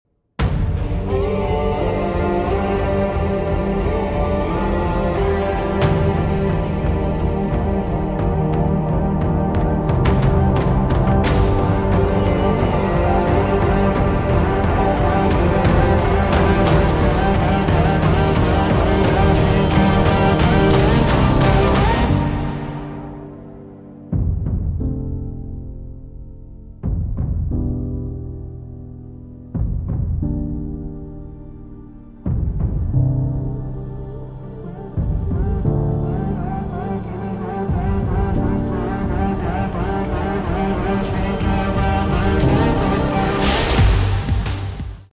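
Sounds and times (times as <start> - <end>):
instrumental music: 0.4 - 45.1.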